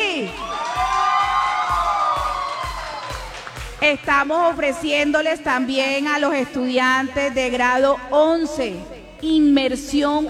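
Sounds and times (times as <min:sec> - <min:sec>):
students applauding: 0:00.3 - 0:03.8
speech: 0:03.8 - 0:10.2.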